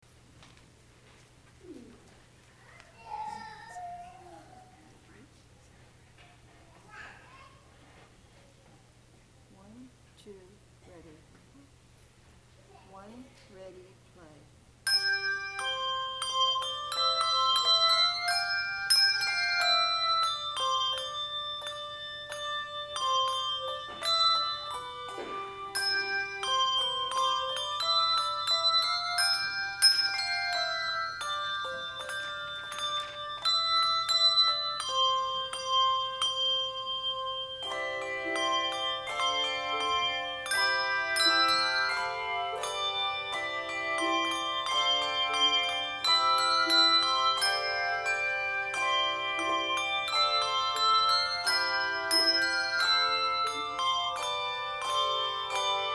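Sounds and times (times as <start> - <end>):
bells ringing: 14.8 - 55.9.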